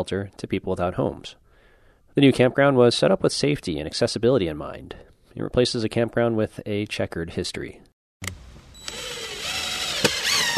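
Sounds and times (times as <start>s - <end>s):
speech: 0.0s - 1.4s, 2.2s - 8.4s
power drill driving screws through a wooden sign onto a bulletin board: 8.2s - 10.5s.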